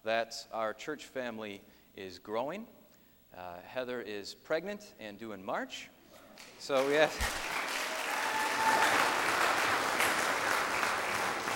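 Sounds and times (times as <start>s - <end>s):
speech: 0.1s - 7.5s, 8.6s - 9.2s
audience clapping: 6.4s - 11.5s.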